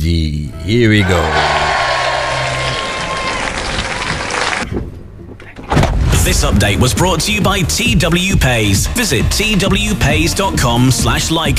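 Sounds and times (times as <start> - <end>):
speech: 0.0 - 1.5, 6.3 - 11.5
audience applause: 1.0 - 4.7.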